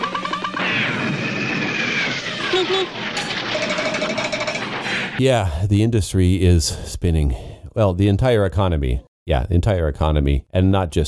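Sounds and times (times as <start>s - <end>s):
cartoon-style falling whistle: 0.0s - 4.0s
loud dense clatter of crashing and banging: 0.0s - 5.2s
speech: 2.6s - 3.0s, 5.2s - 11.0s.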